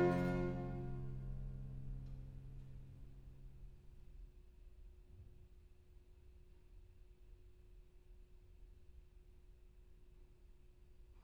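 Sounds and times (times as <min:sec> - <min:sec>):
minuet and trio music: 0:00.0 - 0:03.6.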